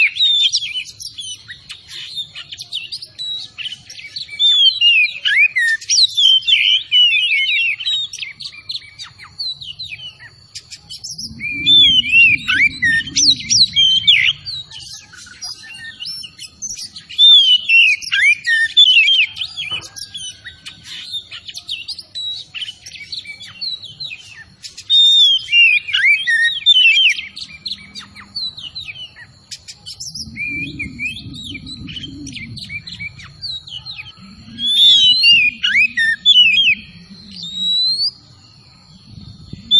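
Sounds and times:
Oriental magpie-robin singing: 0:00.0 - 0:38.6
low rumbling noise: 0:10.8 - 0:15.5, 0:29.8 - 0:39.7.

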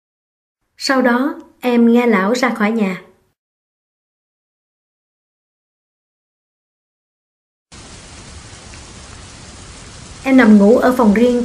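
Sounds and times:
speech: 0:00.8 - 0:03.1, 0:10.4 - 0:11.4
thunder: 0:07.7 - 0:10.6
heavy rain on a roof: 0:07.7 - 0:11.4.

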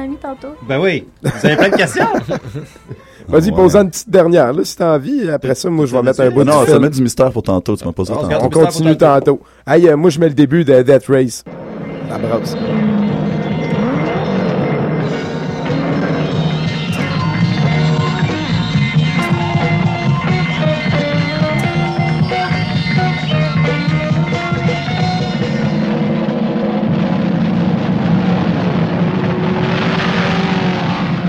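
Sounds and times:
speech: 0:00.0 - 0:13.0
laughter: 0:01.2 - 0:03.4
big engines roaring in film excerpt: 0:11.5 - 0:31.2
droning tones: 0:11.5 - 0:31.2.

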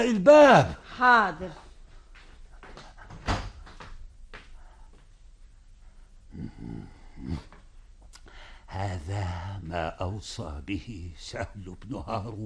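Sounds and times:
speech: 0:00.0 - 0:01.6, 0:06.4 - 0:07.5, 0:08.7 - 0:12.4
door being closed carefully: 0:03.1 - 0:03.8.

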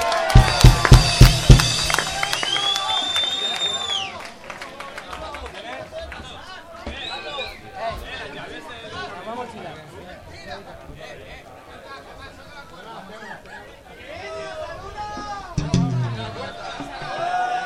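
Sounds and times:
audience clapping in a quick rhythmic burst: 0:00.0 - 0:05.8
crowd murmuring: 0:15.4 - 0:17.5.

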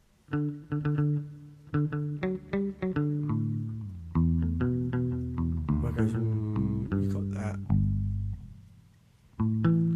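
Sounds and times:
speech: 0:00.3 - 0:00.9
bass guitar riff with reverb on the high end: 0:00.3 - 0:09.9.

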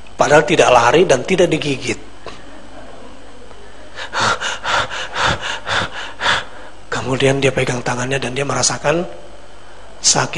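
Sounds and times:
speech: 0:00.2 - 0:02.1, 0:07.1 - 0:09.3, 0:10.0 - 0:10.3
voice imitating heavy panting of someone just woken: 0:03.9 - 0:06.8.

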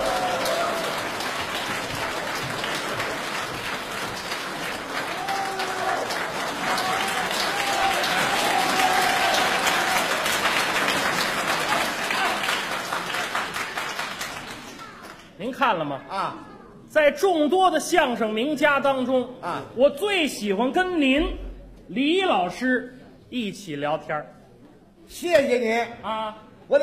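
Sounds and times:
audience applause welcoming two crosstalk comedians: 0:00.0 - 0:15.2
speech: 0:15.6 - 0:24.4, 0:25.1 - 0:26.8.

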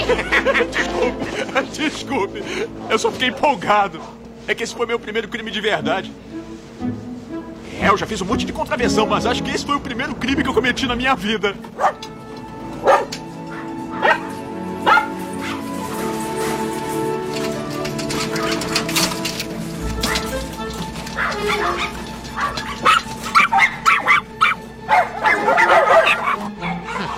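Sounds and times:
laughter: 0:00.0 - 0:03.5, 0:25.1 - 0:27.1
speech: 0:00.1 - 0:07.0, 0:07.8 - 0:12.1
dogs barking and yipping: 0:02.5 - 0:04.3, 0:11.7 - 0:27.1.

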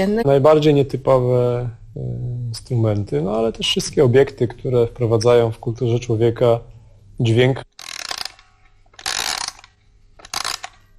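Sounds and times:
speech: 0:00.0 - 0:07.7
music-box toilet paper holder mechanism clicking and rattling: 0:07.7 - 0:10.9.

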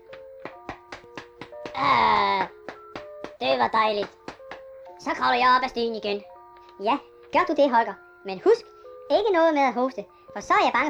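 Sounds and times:
broomstick thumping on someone's back: 0:00.0 - 0:05.2
person groaning: 0:01.7 - 0:02.4
speech: 0:01.8 - 0:02.6, 0:03.4 - 0:04.2, 0:05.0 - 0:10.8.

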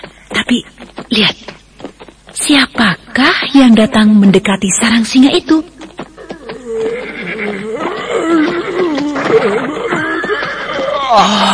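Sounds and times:
speech: 0:00.0 - 0:01.5, 0:02.4 - 0:05.7, 0:11.1 - 0:11.5
donkey braying: 0:06.2 - 0:11.5.

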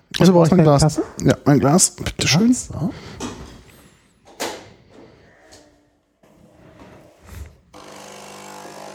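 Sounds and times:
speech: 0:00.2 - 0:03.2
Nespresso capsule coffee machine brewing espresso: 0:07.8 - 0:08.9.

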